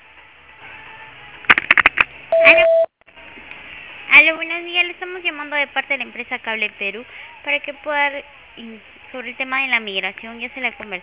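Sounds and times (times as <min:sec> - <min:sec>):
voicemail beep after a recorded message: 0:02.3 - 0:02.9
speech: 0:04.3 - 0:11.0.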